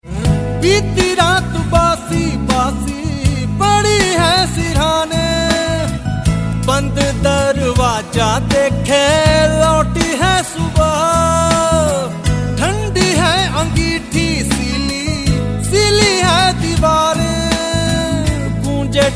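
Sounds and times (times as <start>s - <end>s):
man singing: 0.0s - 19.1s.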